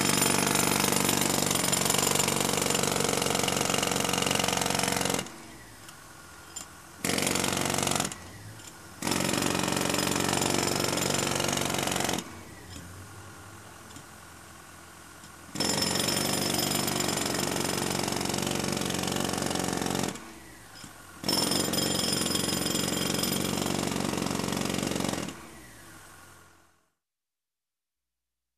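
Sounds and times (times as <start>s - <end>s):
jackhammer on concrete: 0.0s - 13.0s, 15.2s - 25.6s.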